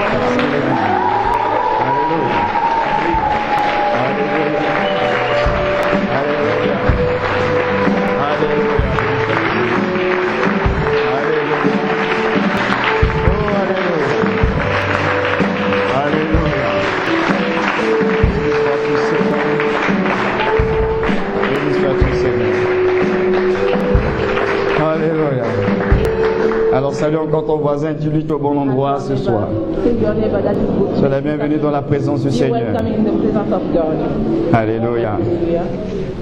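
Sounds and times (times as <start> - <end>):
audience applause and cheering: 0.0 - 27.1
speech: 27.3 - 36.1.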